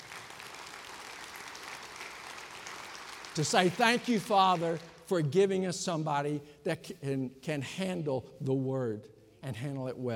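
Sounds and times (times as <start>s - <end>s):
audience applause: 0.0s - 5.0s
speech: 3.4s - 10.1s.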